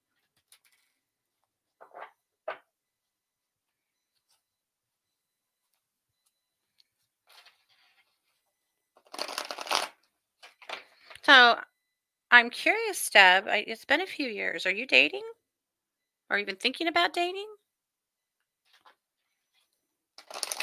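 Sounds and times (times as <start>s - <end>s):
playing cards being shuffled for a card reading: 9.0s - 10.0s
speech: 11.3s - 11.7s, 12.3s - 15.4s, 16.3s - 17.6s.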